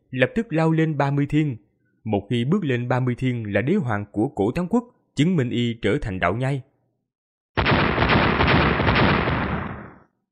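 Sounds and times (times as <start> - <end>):
speech: 0.1 - 6.7
earth-shaking explosion sound effect: 7.6 - 10.0.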